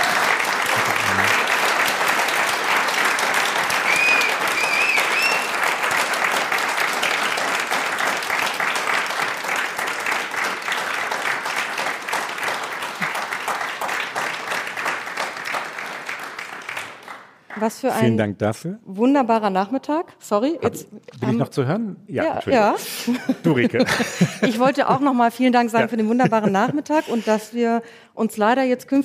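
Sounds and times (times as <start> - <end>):
live audience applause: 0.0 - 18.1
laughter: 0.6 - 1.4, 22.4 - 27.6
speech: 17.6 - 29.0.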